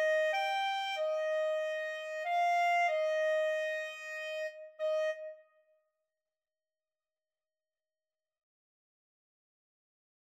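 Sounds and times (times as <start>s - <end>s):
clarinet duet: 0.0s - 5.4s.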